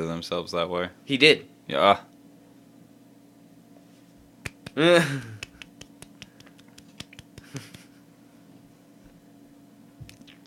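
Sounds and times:
speech: 0.0 - 2.1, 4.8 - 5.4
golf clap: 4.4 - 7.9
laughter: 7.4 - 8.0.

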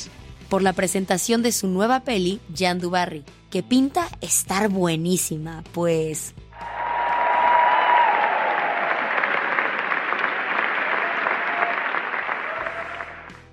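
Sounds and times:
speech: 0.0 - 6.4
standing ovation applause: 6.6 - 13.4.

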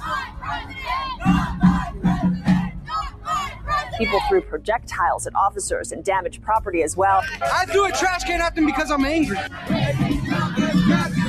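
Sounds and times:
large angry protest crowd shouting: 0.0 - 4.4, 7.1 - 11.2
speech: 4.0 - 11.2.

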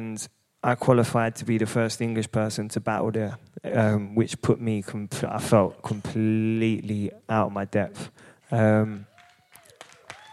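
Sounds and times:
speech: 0.1 - 9.1
sparse applause: 8.8 - 10.3.

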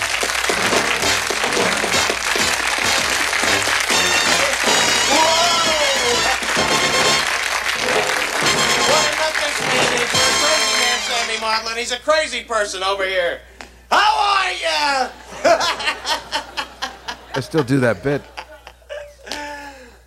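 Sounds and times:
loud audience applause greeting a comedian: 0.0 - 11.4
laughter: 4.4 - 6.8, 15.1 - 19.7
speech: 11.8 - 13.5, 14.6 - 16.2, 17.4 - 18.4.

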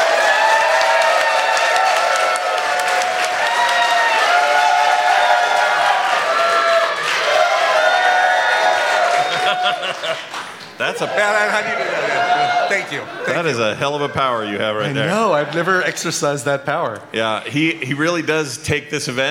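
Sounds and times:
audience applause and cheering: 0.0 - 14.3
laughter: 9.0 - 16.1
speech: 11.0 - 19.2.

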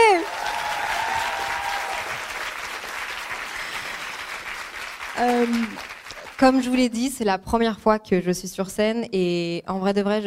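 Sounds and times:
audience applauding: 0.0 - 7.0
speech: 5.2 - 10.2.

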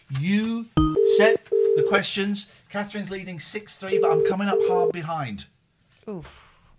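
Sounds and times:
speech: 0.1 - 0.4, 1.2 - 6.5
phone keypad button tones: 0.8 - 1.1.

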